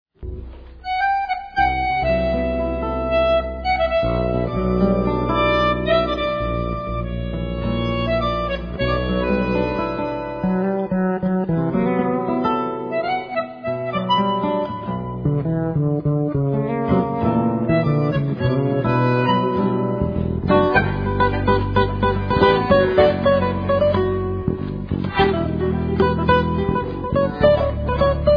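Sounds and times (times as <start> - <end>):
jazz tango music: 0.2 - 28.3.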